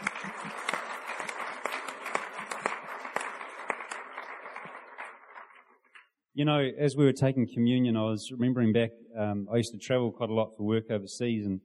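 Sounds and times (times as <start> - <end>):
audience applause: 0.0 - 6.0
speech: 6.4 - 11.6.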